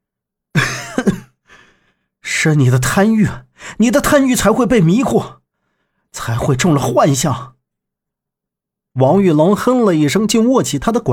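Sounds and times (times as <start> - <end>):
single cough: 0.6 - 1.3
speech: 2.4 - 5.4, 6.2 - 7.6, 9.0 - 11.1.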